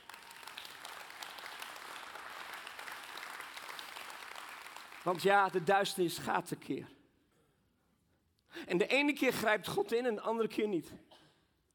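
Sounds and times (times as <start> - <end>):
audience clapping: 0.0 - 6.0
speech: 5.0 - 7.0, 8.7 - 11.1.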